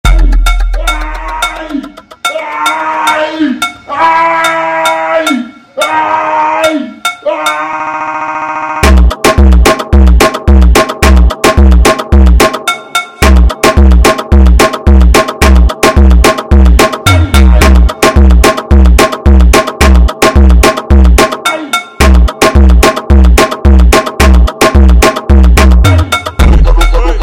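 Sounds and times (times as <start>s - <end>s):
slowed beat: 0.0s - 7.8s, 8.8s - 27.2s.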